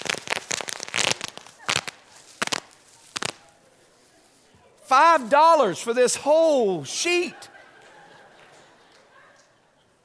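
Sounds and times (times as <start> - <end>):
bubble wrap being squeezed and popping: 0.0 - 3.5
laughter: 3.7 - 10.0
speech: 4.9 - 7.5.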